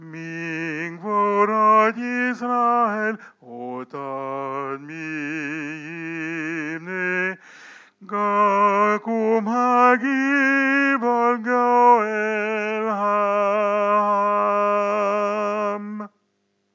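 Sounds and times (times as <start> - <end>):
man singing soprano chant: 0.0 - 16.1.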